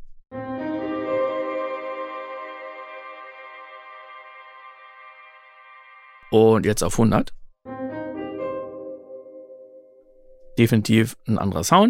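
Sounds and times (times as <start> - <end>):
bright tonal chord through reverb effect plugin with damping at zero: 0.4 - 6.6, 7.7 - 10.4
speech: 6.3 - 7.4, 10.6 - 11.8.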